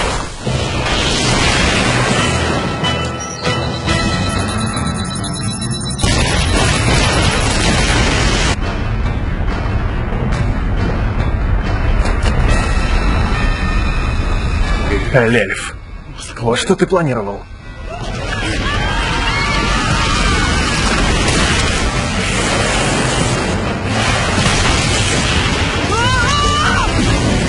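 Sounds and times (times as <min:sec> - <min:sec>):
rocket salvo explosions: 0:00.1 - 0:16.1, 0:17.8 - 0:27.4
speech: 0:15.1 - 0:15.8, 0:16.4 - 0:17.6.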